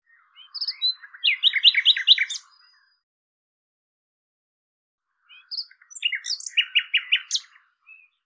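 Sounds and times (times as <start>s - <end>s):
Common nightingale song with chirps and rattling series: 0.1s - 2.6s, 5.2s - 8.2s.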